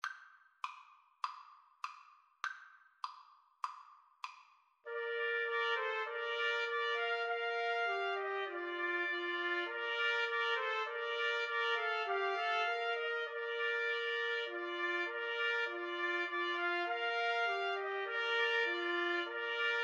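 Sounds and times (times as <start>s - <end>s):
trumpet trio: 4.9s - 19.8s.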